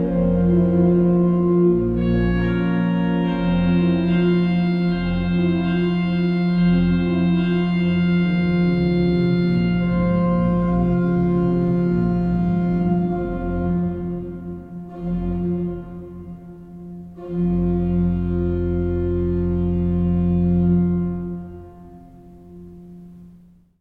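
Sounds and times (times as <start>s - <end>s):
organ symphony: 0.0s - 23.5s.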